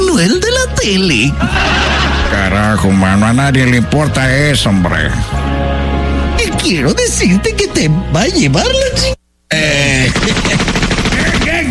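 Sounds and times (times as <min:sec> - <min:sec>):
speech: 0:00.2 - 0:05.7, 0:06.6 - 0:10.7
laughter: 0:01.4 - 0:02.8, 0:09.5 - 0:11.7
automatic gunfire: 0:10.1 - 0:11.7.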